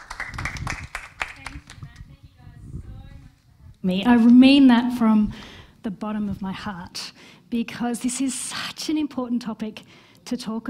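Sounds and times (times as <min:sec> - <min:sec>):
audience applause at an evening talk on managing children's screens: 0:00.0 - 0:01.7
speech: 0:03.8 - 0:10.6.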